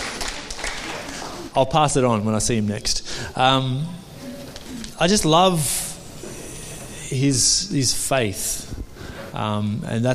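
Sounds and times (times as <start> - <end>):
audience clapping: 0.0 - 1.5
speech: 1.6 - 4.0, 5.0 - 5.8, 7.1 - 10.1.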